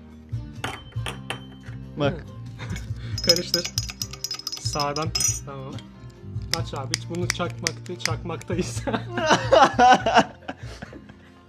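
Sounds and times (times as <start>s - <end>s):
speech: 2.0s - 2.4s, 3.3s - 3.8s, 4.7s - 5.9s, 6.6s - 10.8s
something dropped into a glass: 2.7s - 5.5s
laughter: 8.5s - 11.4s.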